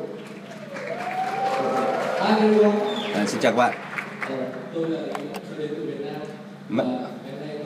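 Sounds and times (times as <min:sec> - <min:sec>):
audience clapping to congratulate a presenter after a group idea pitch: 0:00.2 - 0:04.7
speech: 0:02.3 - 0:07.5.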